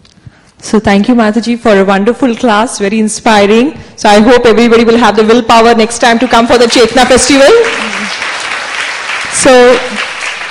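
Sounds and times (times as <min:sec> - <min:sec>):
speech: 0:00.6 - 0:08.2, 0:09.4 - 0:10.1
audience clapping after a class at a festival: 0:06.0 - 0:10.4.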